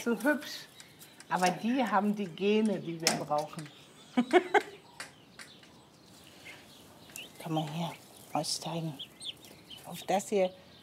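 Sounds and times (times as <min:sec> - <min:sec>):
speech: 0:00.0 - 0:00.7, 0:01.3 - 0:04.7, 0:07.5 - 0:09.1, 0:09.9 - 0:10.6
English breed laying hens clucking: 0:04.2 - 0:10.2.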